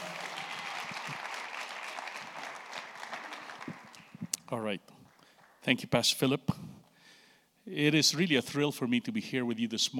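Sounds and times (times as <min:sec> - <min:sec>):
church audience applause welcoming a guest pastor: 0:00.0 - 0:04.4, 0:05.0 - 0:05.6
speech: 0:04.5 - 0:05.0, 0:05.6 - 0:06.7, 0:07.7 - 0:09.9.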